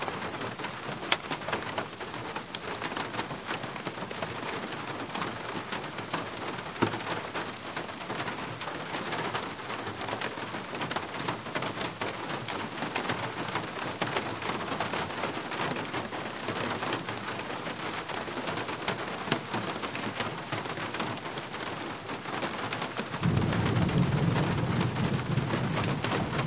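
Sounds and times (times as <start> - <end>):
medium rain on a wooden roof: 0.0 - 26.4
thunder rumble: 23.2 - 26.4.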